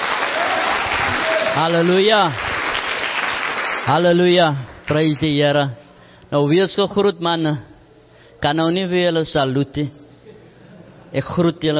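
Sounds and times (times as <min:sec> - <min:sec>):
audience applause: 0:00.0 - 0:04.2
speech: 0:01.6 - 0:02.4, 0:03.9 - 0:07.7, 0:08.4 - 0:10.0, 0:11.1 - 0:11.7.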